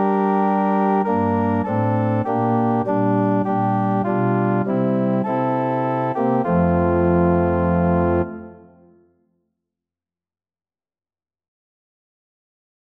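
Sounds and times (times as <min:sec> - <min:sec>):
organ: 0:00.0 - 0:08.9.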